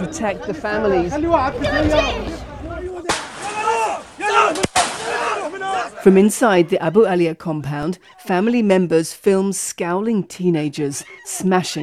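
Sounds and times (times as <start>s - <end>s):
speech: 0.0s - 3.0s, 5.8s - 11.8s
laughter: 0.0s - 8.6s
gunshots fired in a village: 1.6s - 5.9s.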